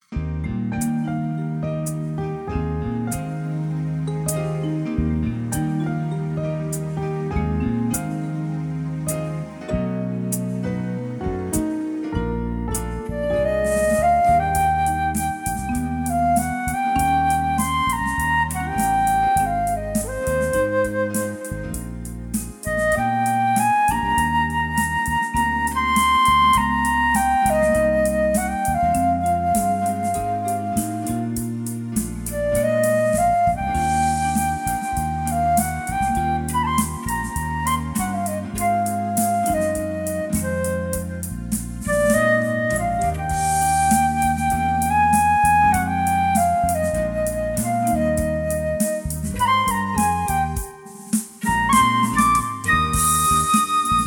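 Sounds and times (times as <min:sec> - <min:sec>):
flute: 0:00.8 - 0:54.0.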